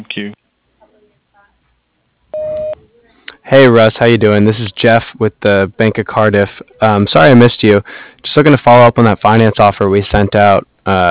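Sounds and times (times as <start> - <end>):
speech: 0.0 - 0.4, 3.5 - 11.1
voicemail tone beep on a telephone line: 2.4 - 2.8.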